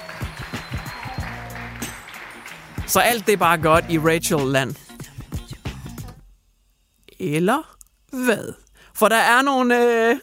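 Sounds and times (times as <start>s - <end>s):
applause sound effect: 0.0s - 4.6s
speech: 2.9s - 4.8s, 7.2s - 10.2s.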